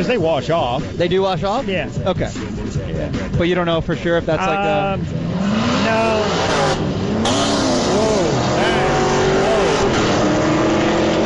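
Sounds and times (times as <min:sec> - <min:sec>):
speech: 0:00.0 - 0:06.9
Corvette race car engine revving while winning a race: 0:05.0 - 0:11.2.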